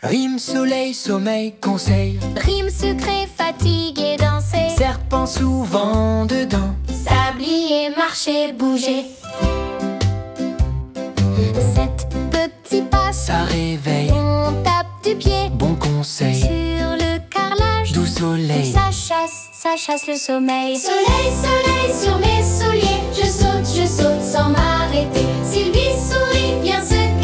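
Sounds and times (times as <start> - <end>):
rhythmic nursery rhyme: 0.0 - 27.2.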